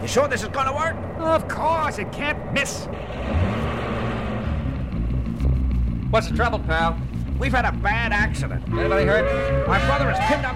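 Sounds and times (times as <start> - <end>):
speech: 0.0 - 3.5, 6.1 - 10.5
long flatbed truck with silver tanks engine rumble: 0.0 - 10.5
truck road noise: 0.0 - 10.5.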